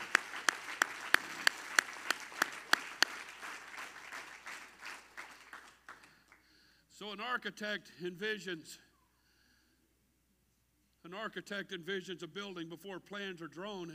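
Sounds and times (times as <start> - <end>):
audience clapping hands in unison: 0.0 - 6.5
speech: 7.0 - 8.9, 11.1 - 13.9.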